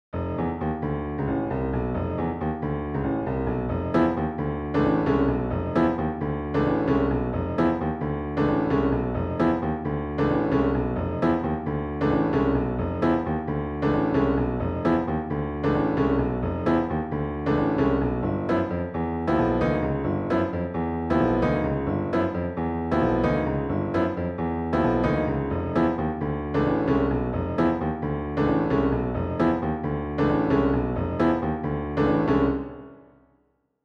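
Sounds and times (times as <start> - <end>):
jazz piano miniature: 0.2 - 33.1.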